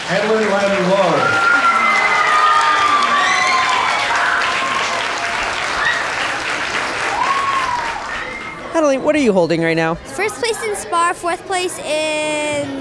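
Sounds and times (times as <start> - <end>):
audience applause: 0.0 - 8.6
speech: 0.1 - 1.4, 8.8 - 12.7
cheers, whoops and high-pitched shouts: 1.0 - 8.7.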